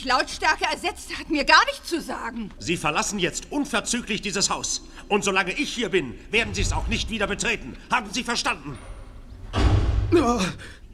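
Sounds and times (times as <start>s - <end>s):
speech: 0.0s - 8.9s, 9.5s - 10.8s
door slamming shut: 6.4s - 7.7s, 8.7s - 10.5s.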